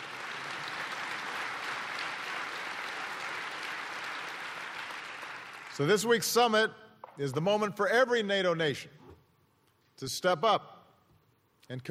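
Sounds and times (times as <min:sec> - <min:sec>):
audience applause: 0:00.0 - 0:06.0
speech: 0:05.8 - 0:09.0, 0:10.0 - 0:10.7, 0:11.7 - 0:11.8.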